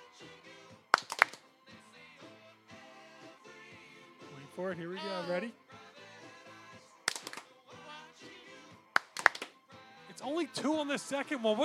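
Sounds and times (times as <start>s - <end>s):
sharp hand claps: 0.9s - 1.5s, 7.1s - 7.5s, 9.0s - 9.6s
speech: 4.6s - 5.7s, 10.3s - 11.6s.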